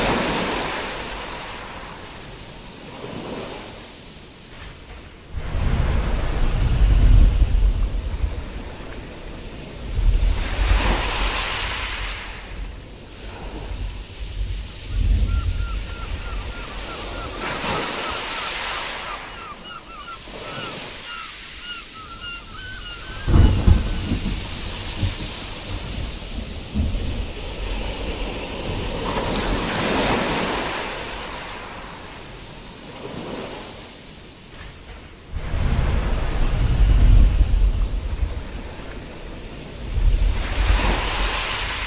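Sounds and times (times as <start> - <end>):
sea storm ocean waves: 0.0 - 41.8.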